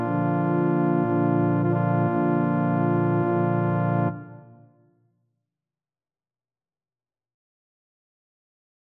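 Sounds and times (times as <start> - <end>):
organ music: 0.0 - 4.5.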